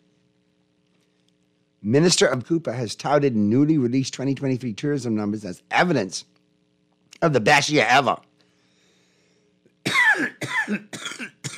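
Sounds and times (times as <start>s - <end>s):
speech: 1.8s - 6.3s, 7.2s - 8.3s
person coughing and choking: 9.8s - 11.5s.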